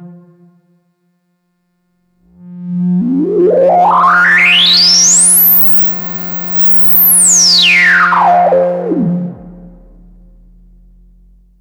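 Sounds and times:
resonant filter sweep: 0:02.3 - 0:11.5.

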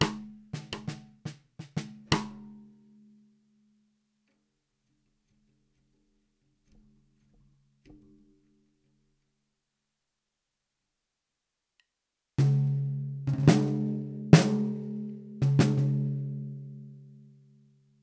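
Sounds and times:
low Tama LMP1455 snare drum: 0:00.0 - 0:02.6, 0:12.4 - 0:16.4.

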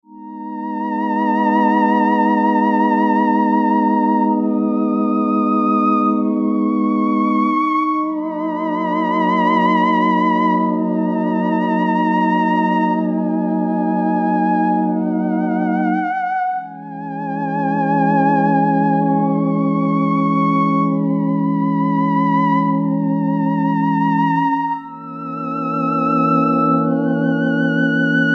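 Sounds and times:
Hydrasynth strings voice: 0:00.2 - 0:28.3.

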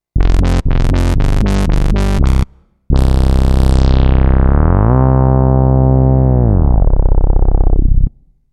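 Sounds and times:
rubber bass: 0:00.0 - 0:08.3.

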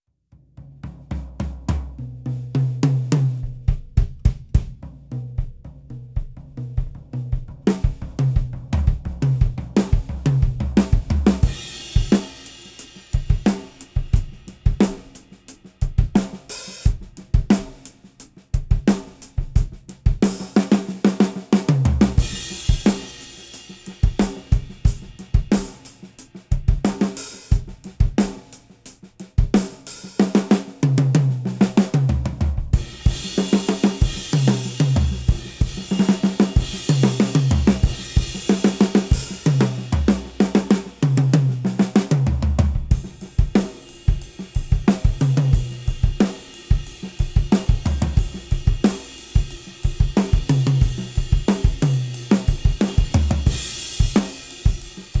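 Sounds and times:
Sonor SQ1 drum kit: 0:00.6 - 0:55.1.

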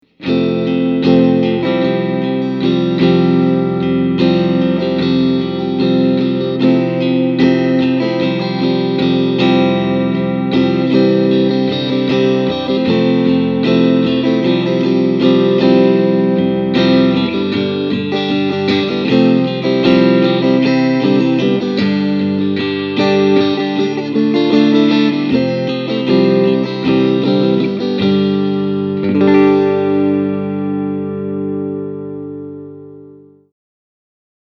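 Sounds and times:
clean strumming: 0:00.0 - 0:33.4.

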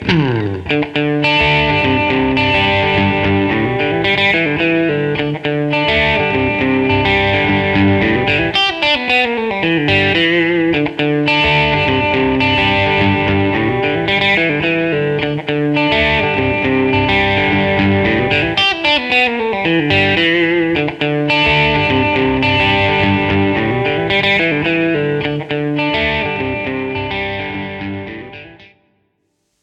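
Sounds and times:
electric guitar with neck and bridge pickups, all coils: 0:00.0 - 0:28.9.

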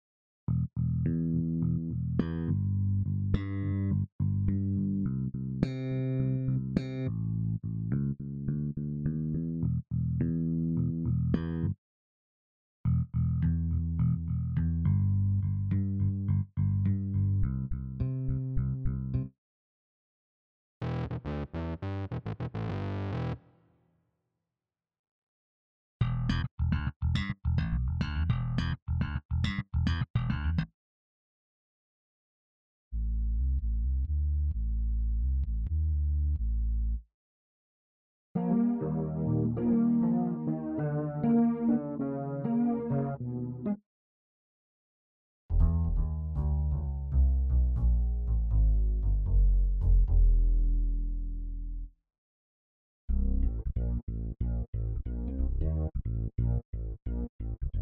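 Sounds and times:
bass: 0:00.5 - 0:11.8, 0:12.8 - 0:19.4, 0:20.8 - 0:23.5, 0:26.0 - 0:30.7, 0:32.9 - 0:37.1, 0:38.4 - 0:43.8, 0:45.5 - 0:52.0, 0:53.1 - 0:57.8.

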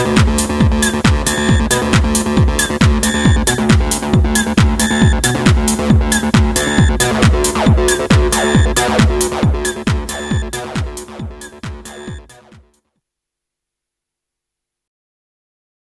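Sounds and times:
JunoDS88 acid synth sequence: 0:00.0 - 0:12.6.

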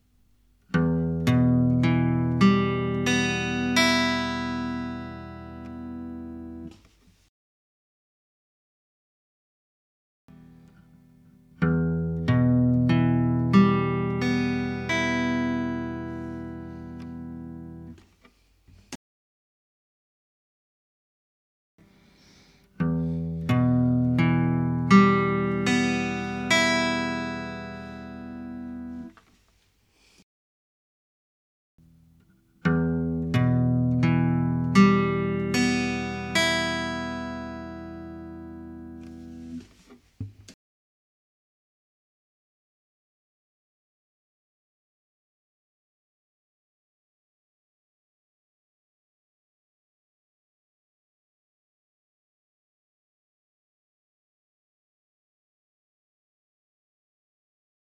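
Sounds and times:
guitar: 0:00.7 - 0:06.8, 0:10.3 - 0:18.0, 0:21.8 - 0:29.2, 0:31.8 - 0:39.9.

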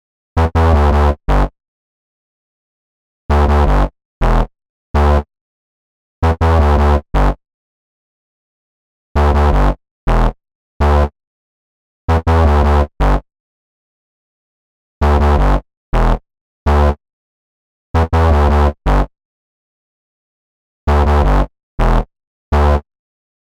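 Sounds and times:
bass line: 0:00.4 - 0:01.6, 0:03.3 - 0:05.3, 0:06.2 - 0:07.4, 0:09.2 - 0:11.1, 0:12.1 - 0:13.3, 0:15.0 - 0:17.0, 0:18.0 - 0:19.1, 0:20.9 - 0:22.9.

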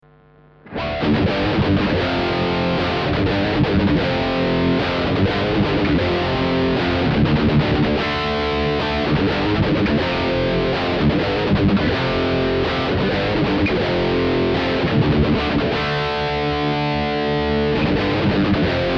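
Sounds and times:
high gain Les Paul guitar through Class AB direct out: 0:00.1 - 0:18.9.

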